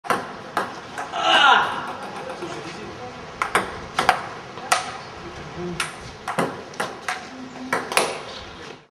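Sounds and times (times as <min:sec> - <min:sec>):
table tennis ball: 0:00.0 - 0:02.5, 0:03.4 - 0:05.0, 0:05.8 - 0:08.3.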